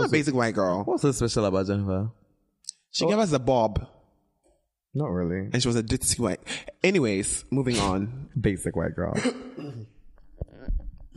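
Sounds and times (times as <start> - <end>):
speech: 0.1 - 2.2, 2.9 - 4.0, 5.0 - 10.0
person coughing: 7.7 - 8.1, 9.2 - 10.0.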